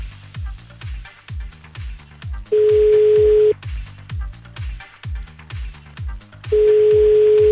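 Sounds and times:
repeating rhythmic thumping pattern: 2.2 - 7.5
telephone call ringing out with steady electronic tones: 2.6 - 3.6, 6.6 - 7.5.

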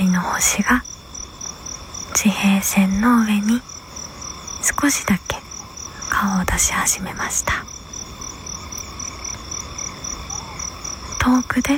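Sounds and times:
frogs croaking in a steady chorus: 0.0 - 11.7
night insects humming: 0.0 - 11.7
speech: 0.2 - 0.9, 2.2 - 3.7, 4.7 - 5.4, 6.2 - 7.7, 11.2 - 11.7
distant Ryukyu scops owl calling: 3.7 - 11.7.

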